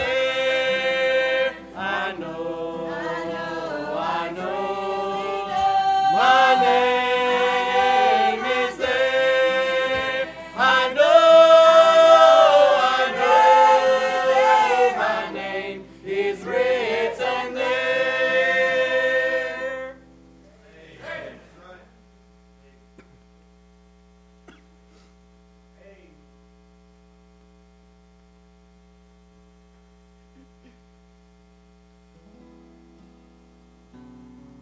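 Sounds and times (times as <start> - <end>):
family singing: 0.0 - 20.0, 20.6 - 21.6.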